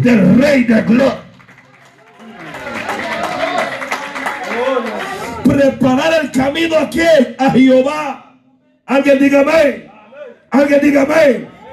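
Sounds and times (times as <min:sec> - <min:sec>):
speech: 0:00.0 - 0:01.2, 0:05.5 - 0:08.3, 0:08.9 - 0:09.9, 0:10.5 - 0:11.7
audience clapping hands: 0:01.0 - 0:05.4.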